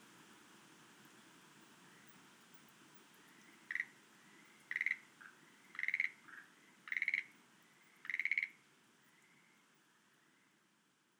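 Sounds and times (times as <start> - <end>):
Schlegel's green tree frog calling: 3.7 - 3.9, 4.7 - 5.0, 5.7 - 6.2, 6.9 - 7.3, 8.0 - 8.6.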